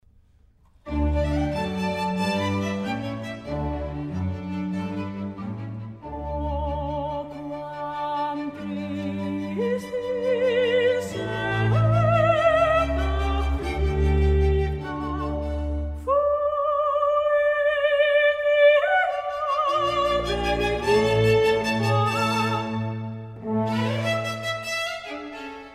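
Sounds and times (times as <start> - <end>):
classical piece in E flat major: 0.1 - 25.7.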